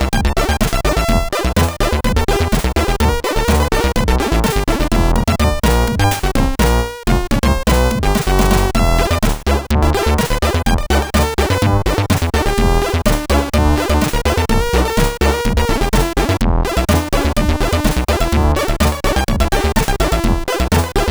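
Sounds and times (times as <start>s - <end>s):
chiptune music from SID CSG8580R5 sound chip: 0.0s - 21.0s.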